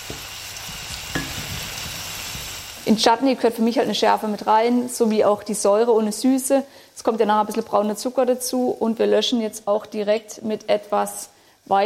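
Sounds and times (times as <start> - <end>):
onions, ginger and chili sweating in hot oil for a chutney: 0.0 - 11.8
speech: 2.9 - 11.8.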